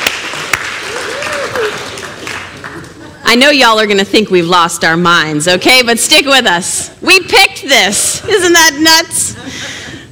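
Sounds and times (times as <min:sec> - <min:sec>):
audience applause: 0:00.0 - 0:03.2
speech: 0:03.3 - 0:09.8.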